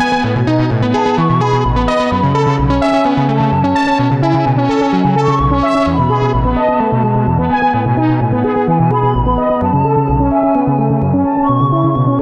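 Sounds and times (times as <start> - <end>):
Digitone synthesizer playing an old tune: 0.0 - 12.2.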